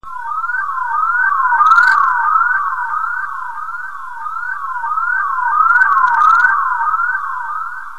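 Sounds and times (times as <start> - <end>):
jungle ambience: 0.0 - 7.9.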